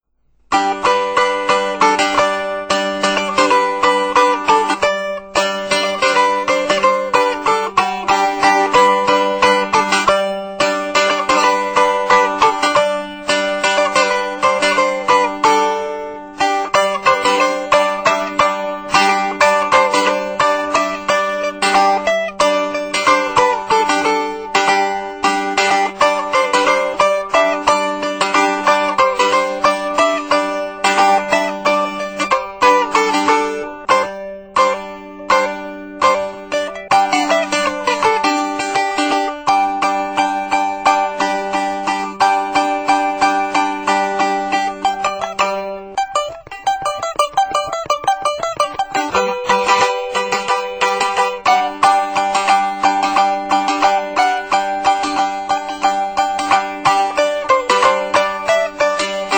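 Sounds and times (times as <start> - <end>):
strings strummed: 0.5 - 59.3.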